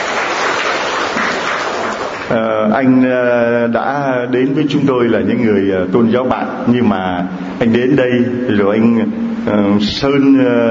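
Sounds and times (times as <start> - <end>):
church congregation applauding to welcome a newcomer: 0.0 - 2.4
speech: 2.3 - 10.6.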